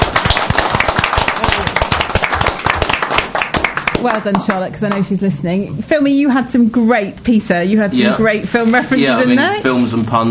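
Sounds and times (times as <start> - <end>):
applause from a small group: 0.0 - 5.0
speech: 4.0 - 10.2.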